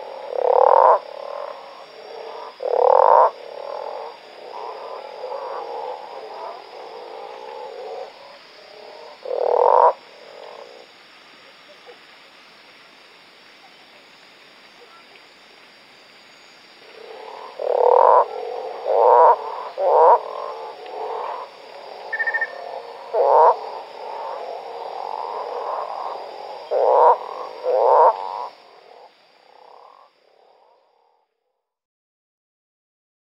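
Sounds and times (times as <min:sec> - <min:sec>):
Manaus slender-legged treefrog rattling croak: 0:00.0 - 0:10.9, 0:16.8 - 0:31.3.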